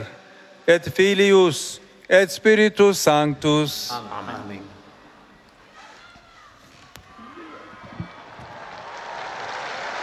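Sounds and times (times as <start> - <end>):
speech: 0.0 - 4.8
faint murmur of voices: 0.0 - 9.0
large crowd applauding after papal blessing: 7.1 - 10.0.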